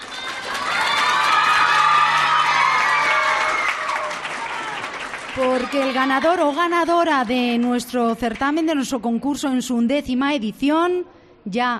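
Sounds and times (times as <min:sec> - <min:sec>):
students' applause: 0:00.0 - 0:08.7
speech: 0:05.4 - 0:11.7.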